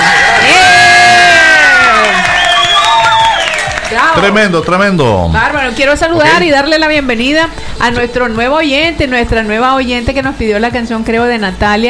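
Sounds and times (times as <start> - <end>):
crowd cheering and whooping: 0.0 - 4.4
scattered clapping: 1.8 - 5.8
speech: 4.2 - 11.8.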